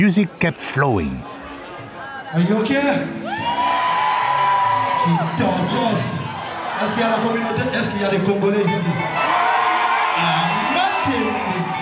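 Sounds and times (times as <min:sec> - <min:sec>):
speech: 0:00.0 - 0:01.3, 0:02.3 - 0:03.2, 0:05.0 - 0:09.4
concert audience cheering and whooping: 0:03.2 - 0:06.0, 0:09.1 - 0:11.8.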